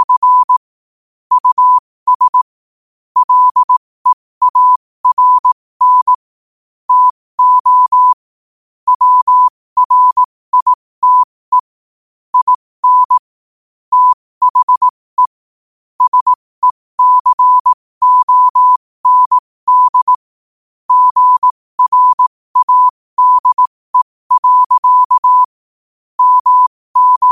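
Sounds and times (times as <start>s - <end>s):
morse code at 5 wpm: 0.0s - 0.6s, 1.3s - 2.4s, 3.2s - 6.2s, 6.9s - 8.2s, 8.9s - 11.7s, 12.4s - 13.3s, 13.9s - 15.4s, 16.0s - 20.2s, 20.9s - 25.6s, 26.2s - 27.3s.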